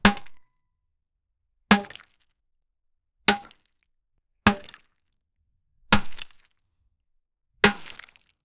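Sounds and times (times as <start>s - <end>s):
watermelon being hit: 0.0s - 0.4s, 3.3s - 3.5s, 4.5s - 4.8s, 6.0s - 6.3s, 7.7s - 8.0s.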